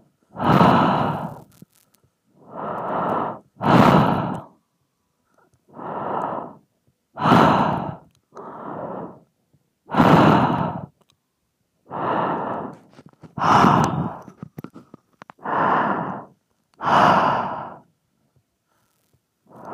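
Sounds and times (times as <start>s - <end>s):
heavy breathing into a microphone: 0.3s - 4.6s, 5.7s - 9.3s, 9.9s - 11.0s, 11.9s - 17.9s, 18.7s - 19.7s.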